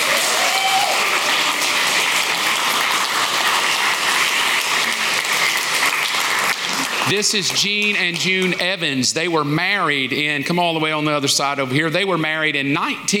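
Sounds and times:
audience applause: 0.0s - 8.6s
speech: 7.1s - 13.1s.

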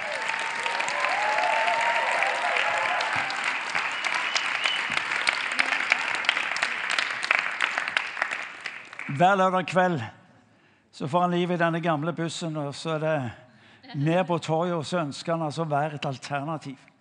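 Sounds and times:
audience applauding: 0.0s - 9.2s
speech: 9.2s - 10.2s, 11.0s - 16.9s.

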